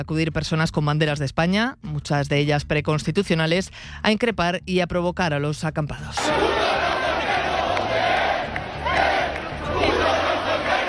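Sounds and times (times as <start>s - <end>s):
speech: 0.0s - 6.7s
protest crowd shouting chants: 6.2s - 10.8s.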